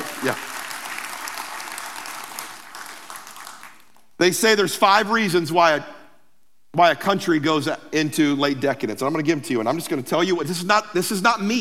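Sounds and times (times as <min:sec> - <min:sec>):
audience applause: 0:00.0 - 0:03.9
speech: 0:00.2 - 0:00.5, 0:04.2 - 0:06.0, 0:06.8 - 0:11.6.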